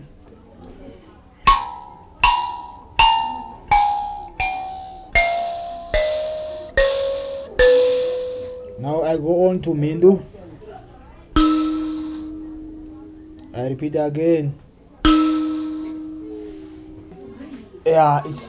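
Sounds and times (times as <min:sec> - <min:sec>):
saungweme mbira being tuned: 0:01.4 - 0:09.7, 0:11.2 - 0:14.3, 0:15.0 - 0:18.1.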